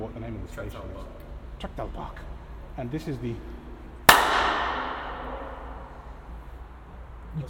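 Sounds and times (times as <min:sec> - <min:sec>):
speech: 0:00.1 - 0:03.6
loud hand clap echoing in underpass: 0:04.1 - 0:06.4.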